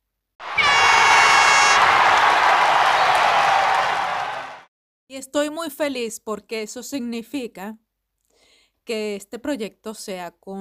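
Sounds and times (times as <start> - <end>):
applause sound effect: 0.4 - 4.7
speech: 5.2 - 7.8, 8.8 - 10.5.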